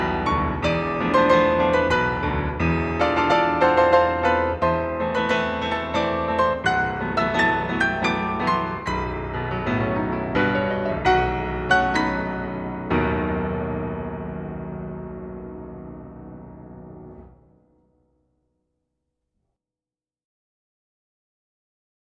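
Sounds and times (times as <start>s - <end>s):
polonaise music for grands battements: 0.0s - 17.3s.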